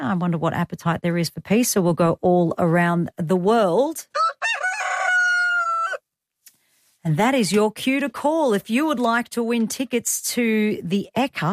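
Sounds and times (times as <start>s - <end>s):
speech: 0.0s - 4.2s, 7.0s - 11.5s
rooster crowing: 4.2s - 6.0s.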